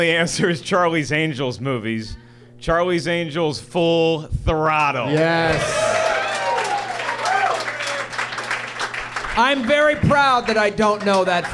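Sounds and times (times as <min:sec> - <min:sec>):
speech: 0:00.0 - 0:06.0, 0:09.4 - 0:11.5
audience applause: 0:05.2 - 0:11.5.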